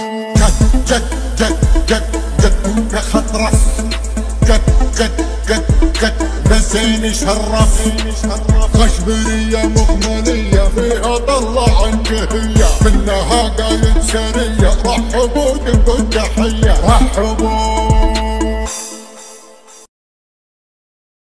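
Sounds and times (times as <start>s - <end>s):
bass boosted Arabic remix car music: 0.0s - 19.8s.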